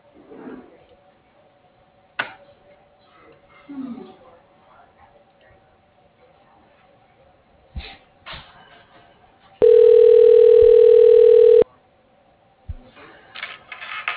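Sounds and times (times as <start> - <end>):
electronic ringback tone on a telephone line calling an office extension: 9.6 - 11.6.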